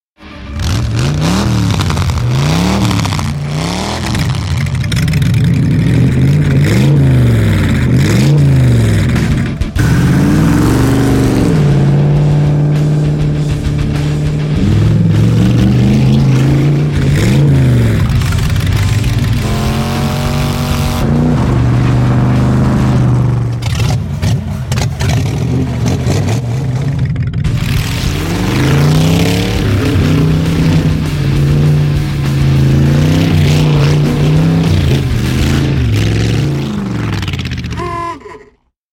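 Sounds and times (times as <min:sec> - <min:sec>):
hot rod engine revving: 0:00.2 - 0:37.8.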